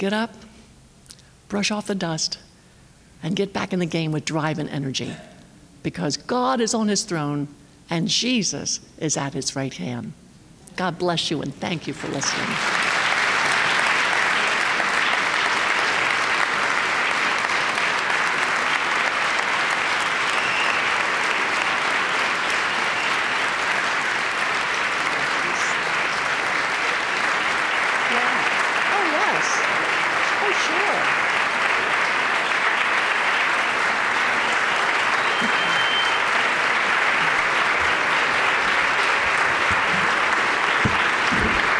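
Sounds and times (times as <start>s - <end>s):
speech: 0.0s - 0.5s, 1.5s - 2.4s, 3.2s - 10.2s, 10.8s - 12.8s
audience applause: 12.0s - 41.7s.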